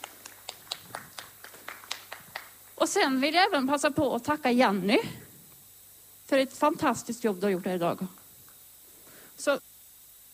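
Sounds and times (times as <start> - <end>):
audience applause: 0.0 - 2.8
speech: 2.8 - 5.2, 6.3 - 8.2, 9.4 - 9.6.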